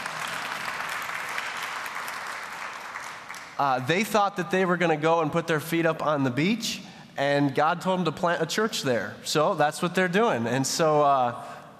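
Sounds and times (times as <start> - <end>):
audience clapping hands: 0.0 - 4.4
speech: 3.6 - 11.7.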